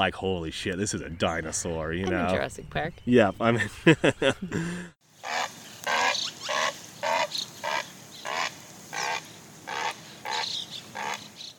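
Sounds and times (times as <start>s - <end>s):
speech: 0.0s - 5.0s
laughter: 3.6s - 4.9s
great blue heron harsh squawk call: 5.2s - 11.4s.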